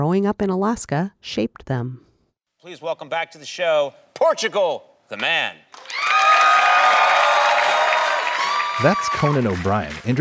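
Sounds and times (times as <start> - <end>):
speech: 0.0 - 6.3, 8.8 - 10.1
studio audience cheering: 5.7 - 10.1
whoops and shouts: 5.8 - 9.6.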